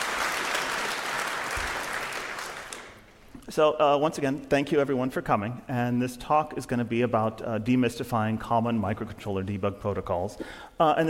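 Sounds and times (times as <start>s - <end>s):
audience applauding: 0.0s - 3.1s
speech: 3.5s - 11.0s.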